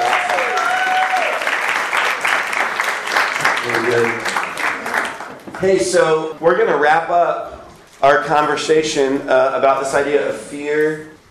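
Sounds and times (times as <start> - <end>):
audience applause: 0.0 - 5.6
speech: 3.9 - 4.3, 5.6 - 11.1.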